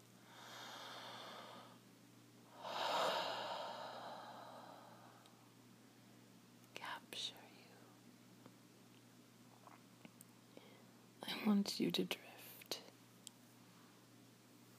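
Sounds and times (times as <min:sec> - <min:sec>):
breathing: 0:00.2 - 0:01.8, 0:02.5 - 0:05.4, 0:10.5 - 0:11.0
speech: 0:11.4 - 0:12.3.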